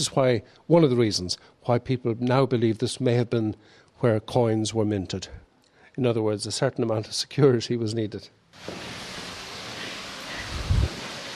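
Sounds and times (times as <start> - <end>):
speech: 0.0 - 9.2
small waterfall at a water source: 8.6 - 11.3.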